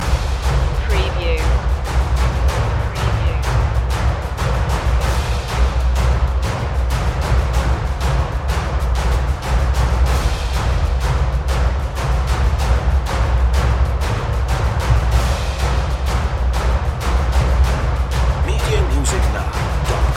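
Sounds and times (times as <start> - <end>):
percussion loop: 0.0 - 20.1.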